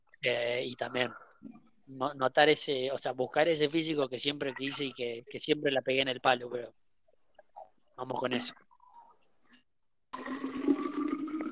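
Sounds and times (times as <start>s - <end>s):
speech: 0.2s - 6.8s, 8.0s - 8.6s
water poured from a kettle into a thermos: 10.1s - 11.5s.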